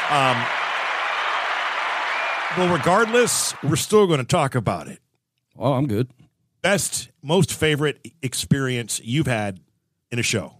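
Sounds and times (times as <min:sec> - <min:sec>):
applause sound effect: 0:00.0 - 0:04.1
speech: 0:00.1 - 0:00.6, 0:02.5 - 0:05.0, 0:05.6 - 0:10.5.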